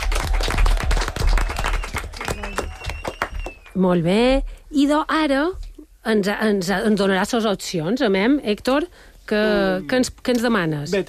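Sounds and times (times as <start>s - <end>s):
applause: 0.0s - 3.8s
speech: 3.8s - 11.0s.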